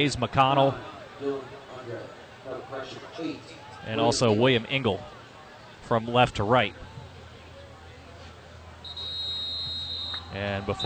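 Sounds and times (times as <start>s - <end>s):
speech: 0.0s - 5.2s, 5.9s - 6.9s, 10.3s - 10.8s
low crowd murmur: 0.0s - 10.8s
referee's whistle long shrill blast: 8.8s - 10.8s.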